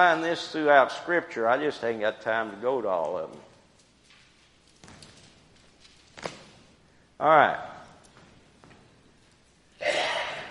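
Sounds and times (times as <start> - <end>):
speech: 0.0 - 3.5, 7.2 - 7.7
sneeze: 9.8 - 10.4.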